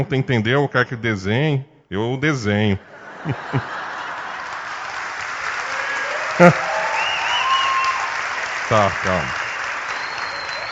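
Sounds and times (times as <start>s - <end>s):
speech: 0.0s - 3.8s, 6.4s - 6.7s, 8.7s - 9.4s
laughter: 2.8s - 5.0s, 6.2s - 6.8s, 8.7s - 9.3s
audience applause: 3.3s - 10.7s.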